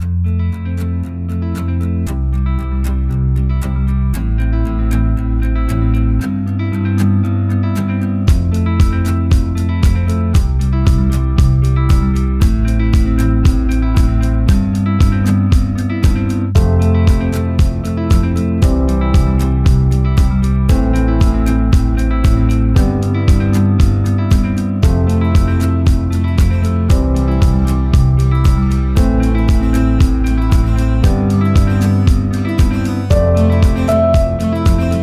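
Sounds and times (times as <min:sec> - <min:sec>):
acoustic inspiring groovy autumn background music: 0:00.0 - 0:35.0.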